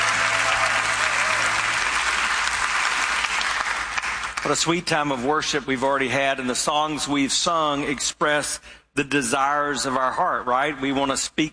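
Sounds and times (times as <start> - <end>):
church congregation applause welcoming church campuses: 0.0 - 4.8
speech: 4.4 - 11.5.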